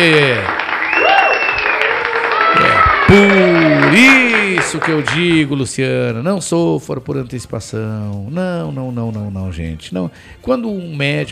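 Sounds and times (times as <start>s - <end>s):
crowd clapping: 0.0s - 5.8s
whistles or cheers: 0.7s - 4.7s
speech: 3.1s - 11.3s.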